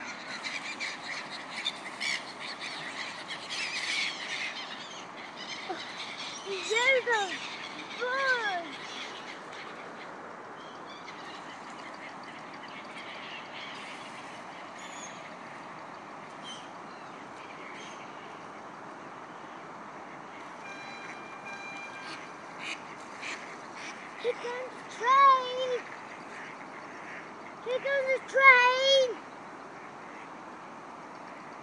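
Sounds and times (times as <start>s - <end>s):
seagulls calling: 0.0s - 18.6s, 19.3s - 31.6s
three-year-old child talking: 6.4s - 8.8s, 24.2s - 25.9s, 27.6s - 29.2s
duck quacking: 20.8s - 24.7s.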